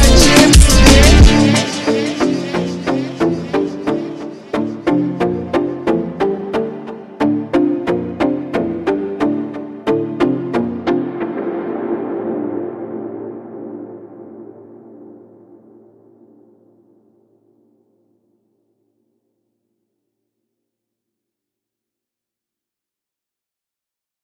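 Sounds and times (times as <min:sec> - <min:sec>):
super slowed montagem music: 0:00.0 - 0:17.4.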